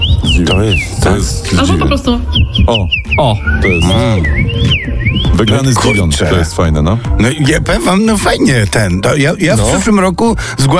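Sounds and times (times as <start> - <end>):
common rosefinch singing: 0.0 - 6.4
speech: 0.2 - 10.7.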